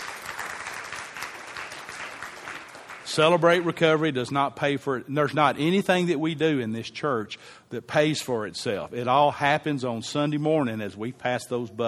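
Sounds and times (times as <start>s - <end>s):
audience applause: 0.0s - 3.7s
speech: 3.1s - 11.8s.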